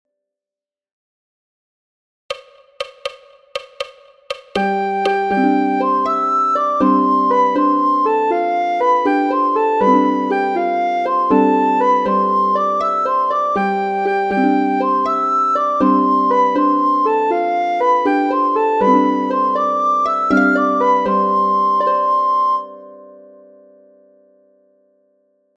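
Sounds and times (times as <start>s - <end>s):
soprano singing: 4.6s - 23.3s.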